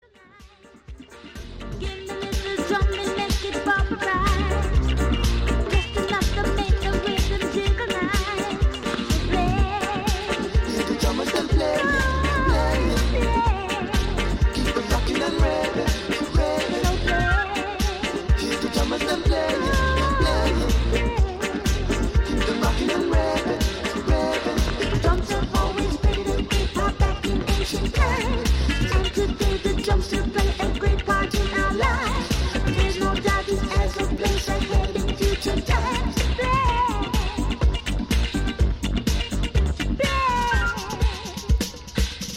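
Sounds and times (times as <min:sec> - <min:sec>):
drums: 0:00.0 - 0:42.3.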